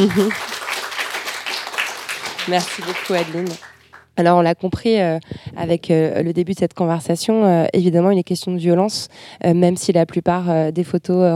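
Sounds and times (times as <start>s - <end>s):
speech: 0.0s - 0.6s, 2.4s - 11.3s
audience applause: 0.0s - 4.0s.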